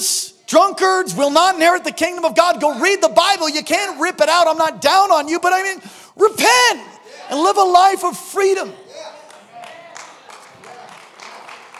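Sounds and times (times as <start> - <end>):
speech: 0.5 - 8.8
weak golf clap from audience: 9.3 - 11.7.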